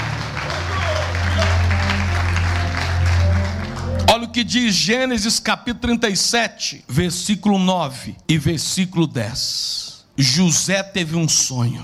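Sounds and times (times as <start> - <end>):
audience applauding: 0.0 - 4.9
speech: 4.4 - 11.8.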